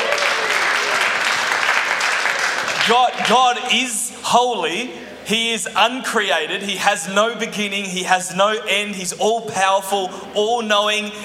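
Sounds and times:
audience cheering and applause: 0:00.0 - 0:03.6
speech: 0:02.9 - 0:11.2.

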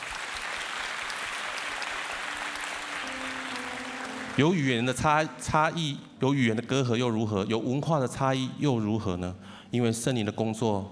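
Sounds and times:
audience applause: 0:00.0 - 0:05.0
speech: 0:04.4 - 0:10.9.

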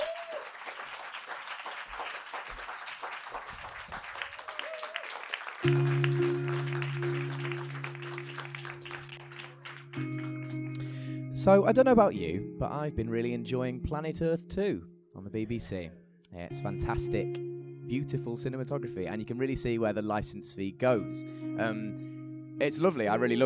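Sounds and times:
audience applause: 0:00.0 - 0:10.7
speech: 0:05.6 - 0:07.1, 0:11.4 - 0:23.4.

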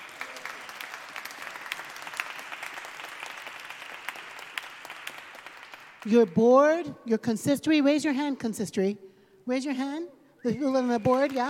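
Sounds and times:
audience clapping: 0:00.0 - 0:06.4, 0:10.6 - 0:11.4
speech: 0:06.0 - 0:11.4.

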